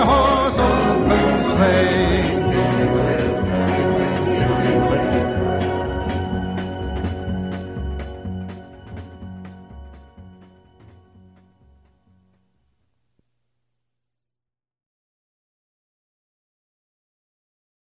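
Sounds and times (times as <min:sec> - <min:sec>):
Christmas music: 0:00.0 - 0:12.3.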